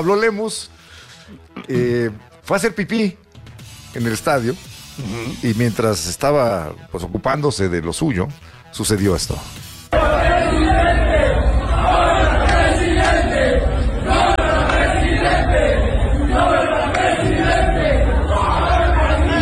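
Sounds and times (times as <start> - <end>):
speech: 0.0 - 3.2, 3.9 - 11.0
large stadium crowd shouting a rhythmic chant at a politician: 9.9 - 19.4.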